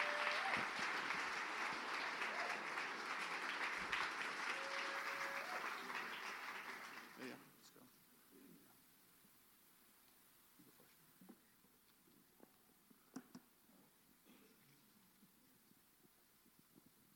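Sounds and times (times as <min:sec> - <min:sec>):
audience applause: 0:00.0 - 0:07.4.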